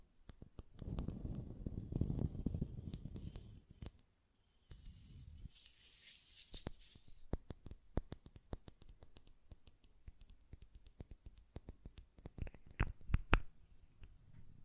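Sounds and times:
soft hiss: 0.8s - 7.6s
taps on a glass perfume bottle: 8.0s - 13.2s.

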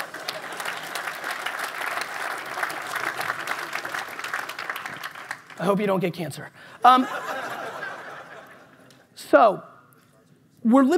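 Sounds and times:
audience applause: 0.0s - 5.8s
speech: 5.6s - 7.4s, 9.3s - 9.7s, 10.6s - 10.9s
laughter: 6.8s - 9.1s.

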